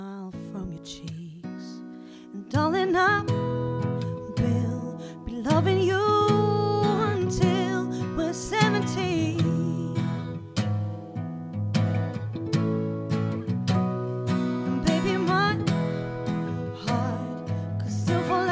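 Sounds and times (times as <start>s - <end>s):
acoustic duo playing a cover: 0.5s - 18.4s.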